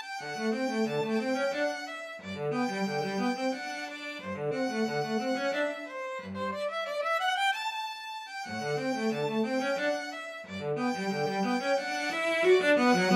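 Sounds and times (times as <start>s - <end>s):
two violins playing a serenade: 0.2s - 13.1s.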